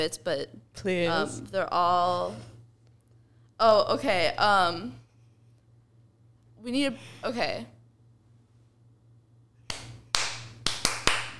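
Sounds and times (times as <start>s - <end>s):
speech: 0.0s - 2.5s, 3.6s - 5.0s, 6.6s - 7.8s
clapping in rhythm to get attention: 9.7s - 11.3s.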